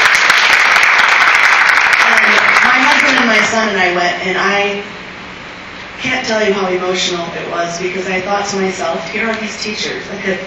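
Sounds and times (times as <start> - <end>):
applause at an elementary school math night: 0.0 - 3.5
speech: 3.4 - 5.0, 6.0 - 10.4.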